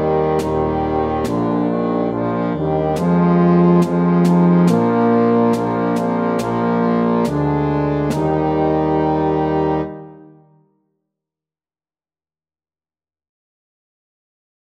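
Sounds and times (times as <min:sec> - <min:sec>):
slow march music: 0:00.0 - 0:10.6.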